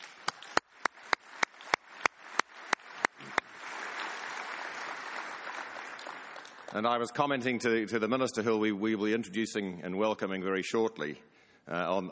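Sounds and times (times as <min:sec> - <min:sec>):
audience applause: 0:00.0 - 0:07.2
speech: 0:06.7 - 0:12.1.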